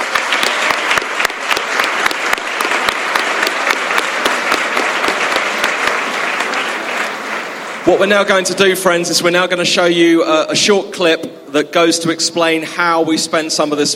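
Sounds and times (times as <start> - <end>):
audience applause: 0.0 - 8.7
speech: 7.9 - 13.9.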